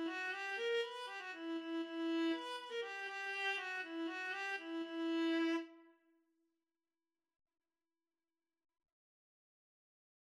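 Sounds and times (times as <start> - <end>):
viola playing Bulgarish dance: 0.0 - 5.7.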